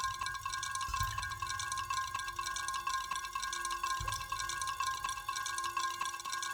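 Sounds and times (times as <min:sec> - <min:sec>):
droplets pattering: 0:00.0 - 0:06.4.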